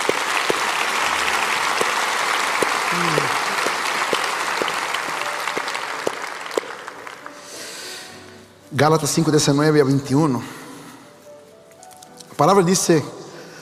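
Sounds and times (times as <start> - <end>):
audience applauding loudly: 0.0 - 7.6
speech: 8.7 - 10.6, 12.4 - 13.2.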